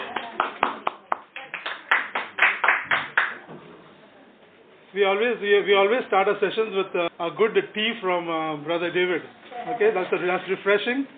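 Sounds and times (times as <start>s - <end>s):
small audience clapping to welcome guests at a church session: 0.0s - 3.5s
speech: 5.0s - 11.1s.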